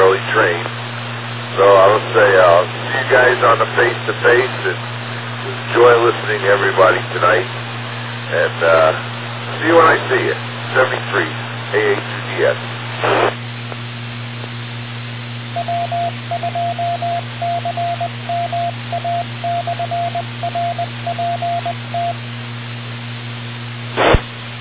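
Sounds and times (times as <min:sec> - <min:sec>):
short bursts of static: 0:00.0 - 0:13.8, 0:23.9 - 0:24.6
humming radio channel: 0:00.0 - 0:16.3, 0:17.2 - 0:24.6
speech: 0:01.6 - 0:07.6, 0:08.3 - 0:13.4
radio repeater identification Morse tone: 0:15.6 - 0:22.2.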